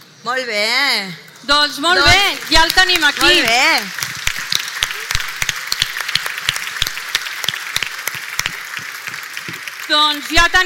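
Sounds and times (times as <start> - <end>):
speech: 0.2 - 4.0, 9.9 - 10.6
crowd applauding: 2.0 - 10.6.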